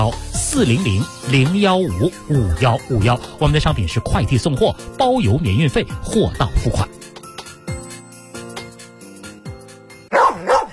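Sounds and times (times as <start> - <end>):
speech: 0.0 - 7.0
dog barking: 10.1 - 10.7.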